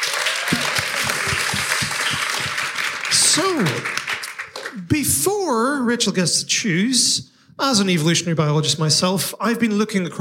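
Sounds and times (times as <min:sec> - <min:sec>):
audience applause: 0:00.0 - 0:04.9
speech: 0:03.4 - 0:04.0, 0:04.8 - 0:10.1.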